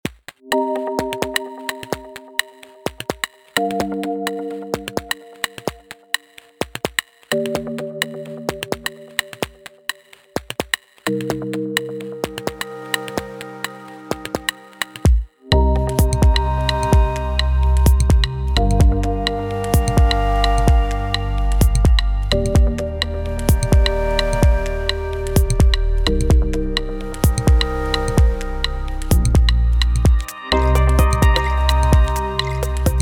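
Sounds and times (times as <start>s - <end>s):
modern chillout music: 0.4s - 10.4s, 11.1s - 33.0s.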